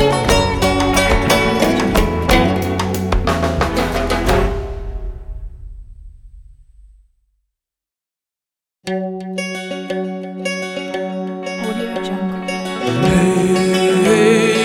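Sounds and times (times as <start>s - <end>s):
Middle East song: 0.0s - 5.2s, 10.5s - 14.6s.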